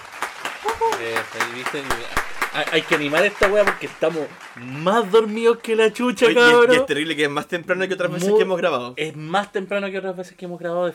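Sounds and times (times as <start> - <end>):
hand claps from a small group: 0.0 - 6.7
speech: 0.7 - 10.9.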